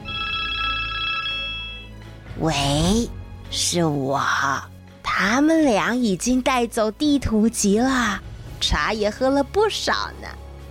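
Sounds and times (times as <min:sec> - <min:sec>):
telephone ringing: 0:00.0 - 0:02.0
speech: 0:02.4 - 0:10.4.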